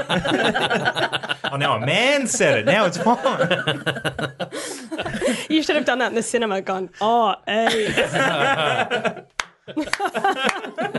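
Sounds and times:
speech: 0.0s - 4.5s, 5.5s - 10.9s
laughter: 0.0s - 5.8s, 7.5s - 10.9s
slow clap: 9.3s - 10.9s.

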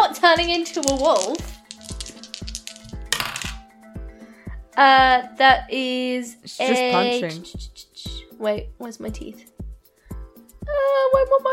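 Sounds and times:
speech: 0.3s - 1.5s, 4.8s - 7.7s, 8.4s - 9.5s, 10.7s - 11.5s
dice clattering on a hard surface: 0.5s - 3.6s.

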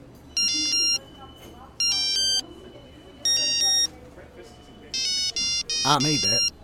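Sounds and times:
homemade ringtone melody on a mobile phone: 0.4s - 1.1s, 1.8s - 3.9s, 4.9s - 6.6s.

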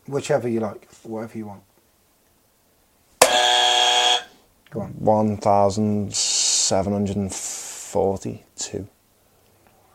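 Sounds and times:
speech: 0.1s - 1.7s, 4.7s - 9.0s
quiz buzzer: 3.2s - 4.4s.

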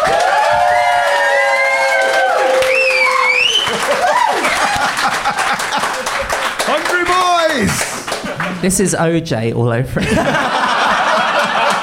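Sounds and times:
cheers and shrill whistles: 0.0s - 4.7s
crowd applause: 0.0s - 8.8s, 10.3s - 11.8s
laughter: 3.6s - 8.6s, 10.0s - 11.8s
speech: 8.6s - 10.6s.

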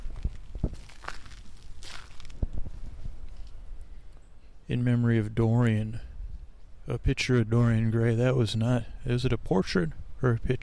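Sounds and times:
footsteps on crushed stone in a garden in Golden Gate Park: 0.0s - 3.5s
low noise: 0.0s - 10.6s
speech: 4.7s - 6.1s, 6.9s - 10.6s.

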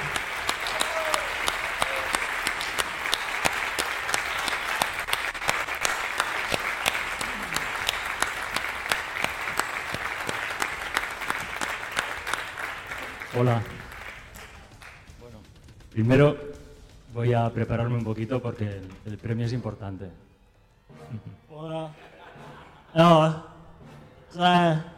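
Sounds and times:
audience applause: 0.0s - 15.2s
speech: 13.4s - 13.8s, 16.0s - 16.4s, 17.2s - 20.3s, 21.1s - 21.8s, 22.9s - 23.4s, 24.4s - 24.9s
laughter: 21.0s - 23.6s.

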